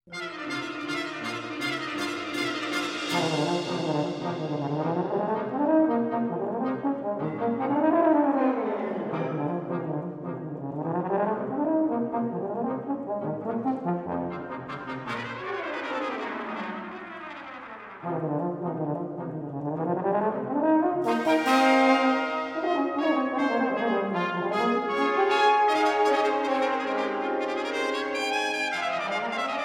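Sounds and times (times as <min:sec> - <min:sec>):
brass and percussion piece: 0:00.1 - 0:29.6.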